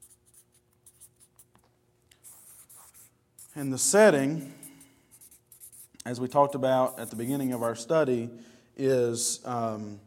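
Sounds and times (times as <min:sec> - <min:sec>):
pen scratching while handwriting letters: 0:00.0 - 0:01.4, 0:02.2 - 0:03.7, 0:04.6 - 0:05.9, 0:06.8 - 0:07.8
speech: 0:03.6 - 0:04.6, 0:06.1 - 0:10.0.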